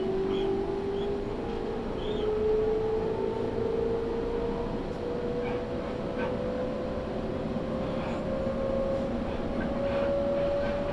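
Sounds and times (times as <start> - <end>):
Tokaido Main Line train rumbling from Hamamatsu toward Toyohashi: 0.0 - 10.9.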